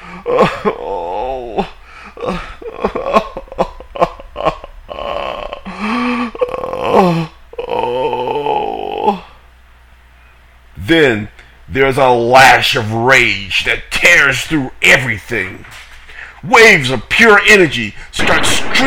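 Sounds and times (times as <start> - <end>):
person crying and wailing: 0.0 - 9.4
speech: 0.3 - 0.8, 10.9 - 15.8, 16.4 - 18.8.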